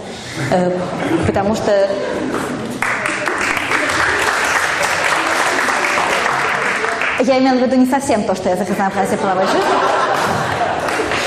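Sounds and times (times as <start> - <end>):
speech: 0.4 - 2.8, 7.2 - 10.0
laughter: 0.8 - 7.0, 8.9 - 11.2
audience applause: 2.7 - 7.2, 9.6 - 11.2.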